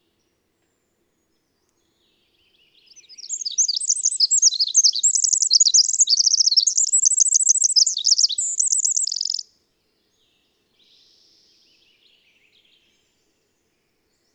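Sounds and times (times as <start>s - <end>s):
twittering bird song with short trills: 2.9s - 9.4s.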